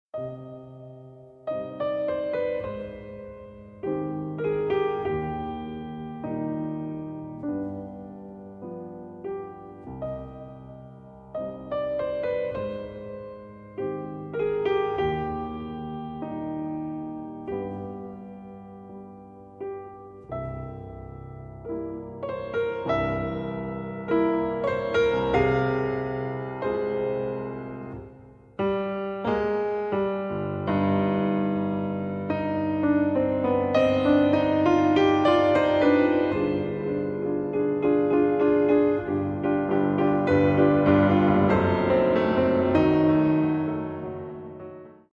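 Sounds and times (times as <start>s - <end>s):
solo piano: 0.1s - 45.1s.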